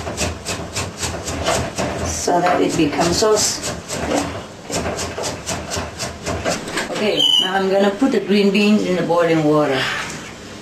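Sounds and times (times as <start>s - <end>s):
knife chopping fruit on a cutting board: 0.0s - 6.7s
speech: 2.3s - 4.4s, 7.0s - 10.0s.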